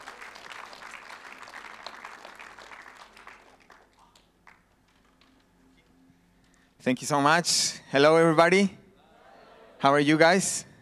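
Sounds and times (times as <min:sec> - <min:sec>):
church audience applause: 0:00.0 - 0:05.4
speech: 0:06.8 - 0:08.8, 0:09.8 - 0:10.7.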